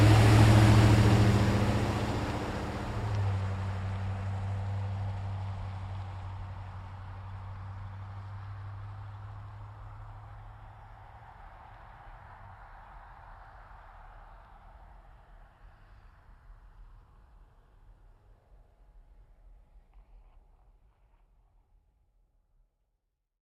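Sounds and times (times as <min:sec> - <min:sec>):
GMC Savana truck driving slowly by a corner: 0:00.0 - 0:18.5.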